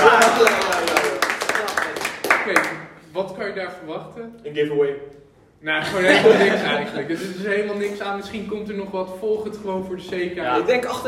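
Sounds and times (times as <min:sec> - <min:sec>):
crowd applause: 0:00.0 - 0:02.8
speech: 0:03.4 - 0:11.0
laughter: 0:05.8 - 0:07.8.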